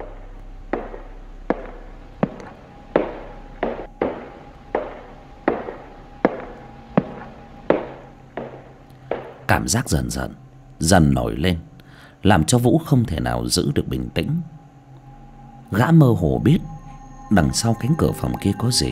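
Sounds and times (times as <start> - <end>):
footsteps: 0.8 - 9.6
speech: 9.6 - 14.6, 15.7 - 16.7, 17.3 - 18.9.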